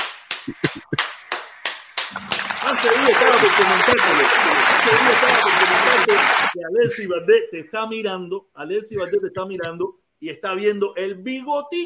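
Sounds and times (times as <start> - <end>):
hand claps: 0.0 - 6.6
speech: 0.5 - 1.2, 2.1 - 11.8
laughter: 2.2 - 7.1, 9.0 - 9.8.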